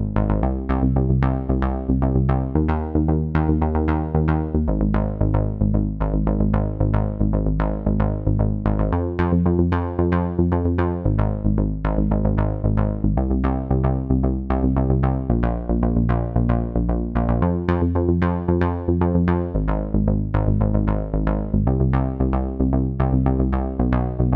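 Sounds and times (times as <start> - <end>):
bass playing on LP: 0.0 - 24.3.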